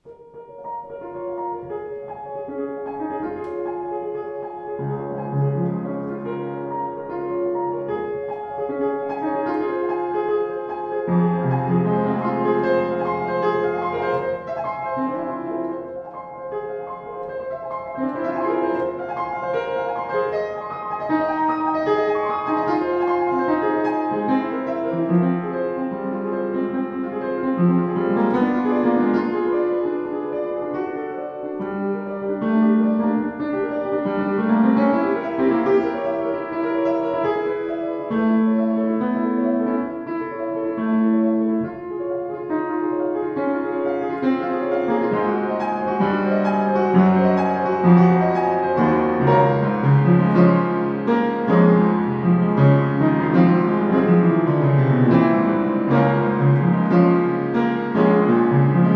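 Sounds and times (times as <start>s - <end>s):
Sauter piano: 0.0s - 58.9s.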